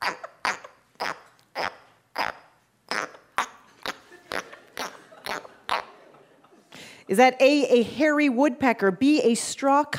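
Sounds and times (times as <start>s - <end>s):
Australian tree frog chirping: 0.0s - 5.9s
laughter: 3.6s - 6.8s
speech: 7.1s - 9.9s.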